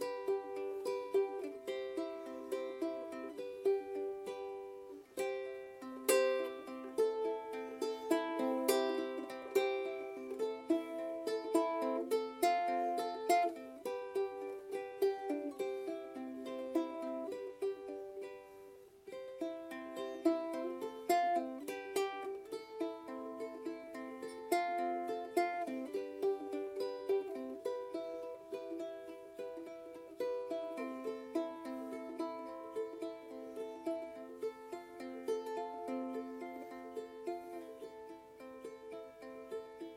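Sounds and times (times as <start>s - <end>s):
eight-string instrument: 0.0s - 39.9s.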